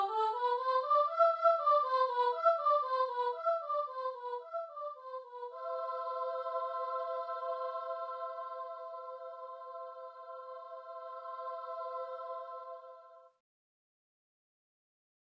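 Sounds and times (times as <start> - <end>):
airy soprano vocalise: 0.0 - 12.2.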